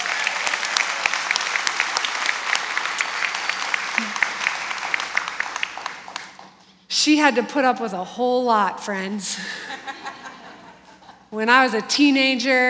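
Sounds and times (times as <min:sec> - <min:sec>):
audience applause: 0:00.0 - 0:06.6
laughter: 0:04.0 - 0:04.7, 0:09.3 - 0:11.3
speech: 0:07.0 - 0:10.2, 0:11.3 - 0:12.6.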